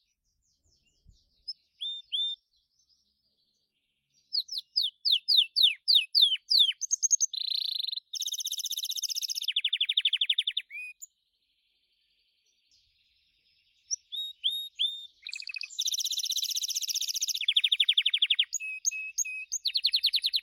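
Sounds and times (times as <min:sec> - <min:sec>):
Gloster canary singing: 0:01.4 - 0:02.4, 0:04.3 - 0:11.1, 0:13.9 - 0:20.4.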